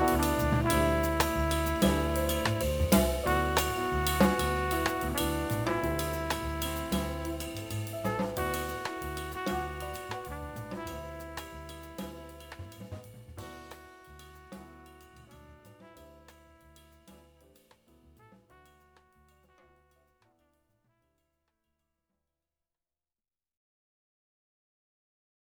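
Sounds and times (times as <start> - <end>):
jazz piece with alto saxophone: 0.0 - 20.2.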